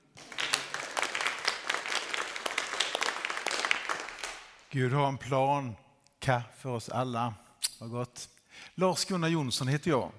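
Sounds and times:
audience applause: 0:00.0 - 0:04.6
speech: 0:04.7 - 0:10.1.

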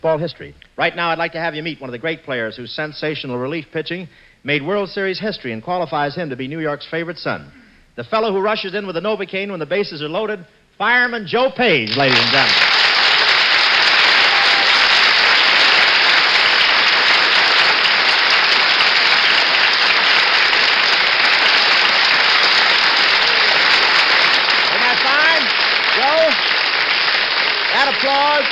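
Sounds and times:
speech: 0:00.0 - 0:12.8
large studio audience applause: 0:11.8 - 0:28.5.

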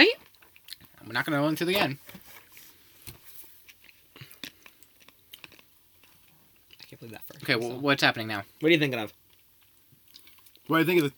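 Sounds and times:
potato chips being chewed during a taste test: 0:00.0 - 0:01.1, 0:03.6 - 0:07.8, 0:08.9 - 0:11.1
speech: 0:01.1 - 0:02.2, 0:07.0 - 0:09.2, 0:10.7 - 0:11.1.

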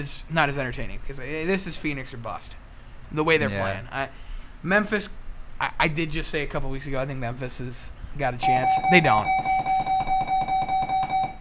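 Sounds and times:
speech: 0:00.0 - 0:09.6
school bell ringing: 0:08.4 - 0:11.3.

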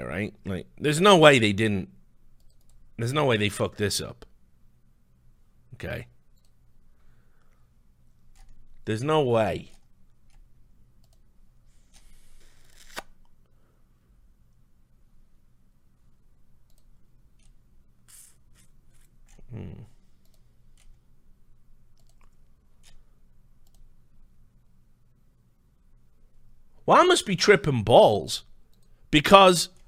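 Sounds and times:
speech: 0:00.0 - 0:02.0, 0:03.0 - 0:04.3, 0:05.8 - 0:06.1, 0:08.8 - 0:09.8, 0:26.9 - 0:28.5, 0:29.1 - 0:29.8
low hum: 0:00.0 - 0:29.8
computer mouse clicks: 0:02.4 - 0:02.8, 0:06.3 - 0:06.6, 0:08.3 - 0:08.7, 0:09.7 - 0:11.3, 0:16.6 - 0:19.4, 0:20.2 - 0:21.0, 0:21.9 - 0:23.0, 0:23.6 - 0:23.9, 0:28.7 - 0:29.0.

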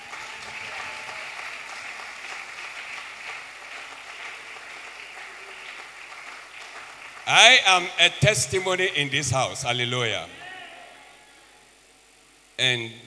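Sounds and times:
audience applause: 0:00.0 - 0:07.9
speech: 0:07.3 - 0:10.4, 0:12.6 - 0:13.0.

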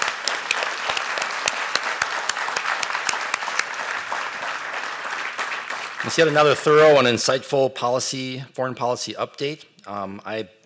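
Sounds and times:
audience applause: 0:00.0 - 0:07.1
speech: 0:06.0 - 0:10.6.

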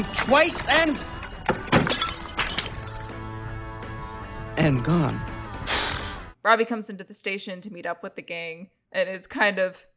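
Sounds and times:
speech: 0:00.0 - 0:01.2, 0:04.6 - 0:05.3, 0:06.4 - 0:09.9
ceramic vase knocked down and shattering: 0:00.0 - 0:03.2.

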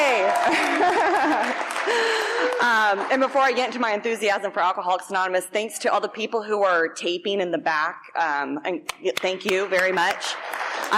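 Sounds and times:
laughter: 0:00.0 - 0:03.6
audience clapping: 0:00.0 - 0:03.9, 0:08.9 - 0:10.9
speech: 0:01.8 - 0:10.9.

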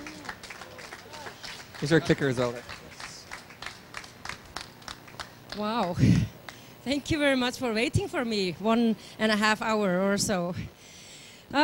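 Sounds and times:
faint sparse audience applause: 0:00.0 - 0:05.6
speech: 0:01.8 - 0:02.8, 0:05.6 - 0:10.8.

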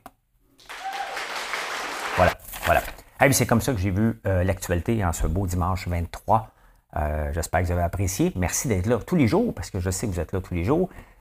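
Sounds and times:
applause: 0:00.6 - 0:02.4
speech: 0:02.2 - 0:11.1.

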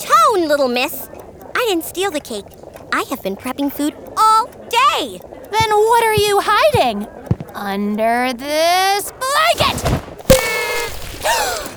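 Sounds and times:
speech: 0:00.4 - 0:04.1, 0:04.7 - 0:10.0, 0:11.2 - 0:11.7
confetti cannon firing: 0:10.3 - 0:11.4.

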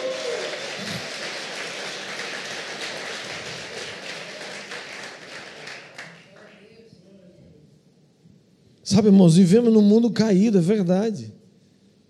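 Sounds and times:
audience applauding: 0:00.0 - 0:06.7
speech: 0:08.9 - 0:11.4.

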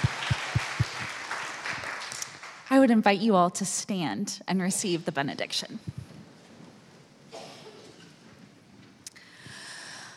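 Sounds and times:
audience applause: 0:00.0 - 0:02.7
speech: 0:02.7 - 0:05.9.

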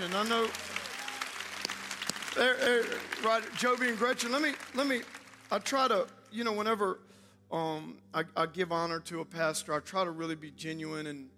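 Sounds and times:
speech: 0:00.0 - 0:00.7, 0:02.4 - 0:11.3
audience applause: 0:00.0 - 0:05.8.

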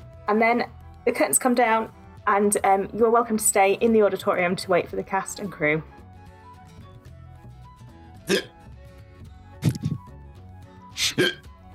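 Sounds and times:
speech: 0:00.3 - 0:06.0, 0:08.3 - 0:08.5
hiccups: 0:08.3 - 0:08.6, 0:09.6 - 0:10.1, 0:11.0 - 0:11.5.

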